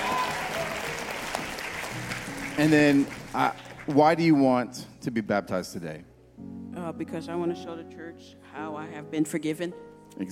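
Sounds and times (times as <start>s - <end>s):
congregation applause at a church baptism service: 0.0s - 4.7s
speech: 2.6s - 10.3s.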